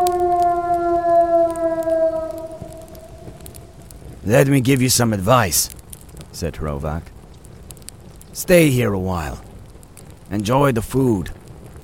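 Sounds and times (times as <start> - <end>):
sled dog howling mournfully in the kennels: 0.0 - 3.9
speech: 4.3 - 5.8, 6.4 - 7.2, 8.4 - 9.5, 10.3 - 11.4.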